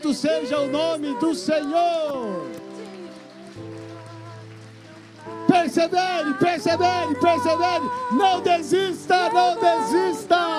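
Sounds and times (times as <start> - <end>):
speech: 0.0 - 2.6, 5.5 - 10.5
audience applauding loudly: 0.0 - 8.3.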